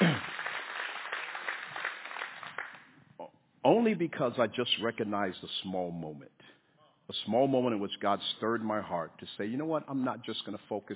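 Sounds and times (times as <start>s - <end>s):
audience clapping: 0.0s - 2.9s
speech: 3.7s - 6.5s, 7.1s - 10.9s.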